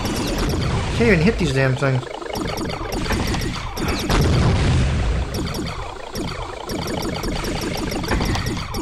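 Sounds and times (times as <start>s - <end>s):
missiles and lasers firing in a space shooter video game: 0.0s - 1.4s, 2.2s - 8.7s
speech: 1.0s - 2.8s.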